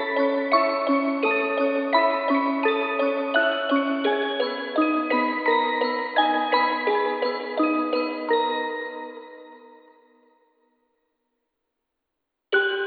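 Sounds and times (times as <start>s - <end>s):
music box melody: 0.0s - 9.9s, 12.6s - 12.8s.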